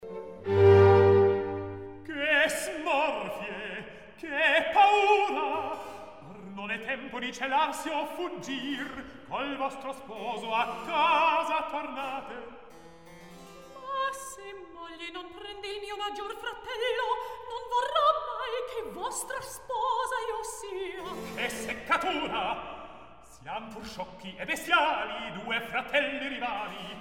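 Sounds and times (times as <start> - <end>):
recitative singing: 0.6 - 12.6, 13.8 - 26.9.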